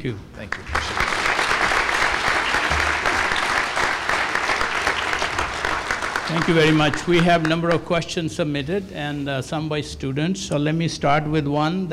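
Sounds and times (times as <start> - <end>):
speech: 0.0 - 0.8, 6.3 - 11.9
audience applause after lecture: 0.5 - 8.0.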